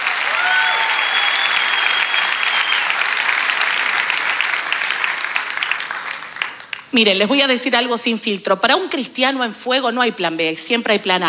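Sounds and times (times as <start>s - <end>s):
faint whoops or cheers: 0.0s - 6.9s
audience clapping: 0.0s - 7.2s
speech: 6.9s - 11.2s.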